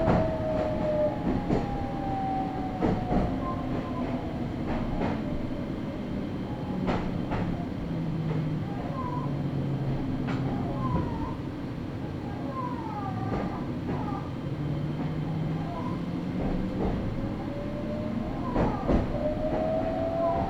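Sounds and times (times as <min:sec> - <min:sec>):
Meitetsu local train rumbling: 0:00.0 - 0:20.4.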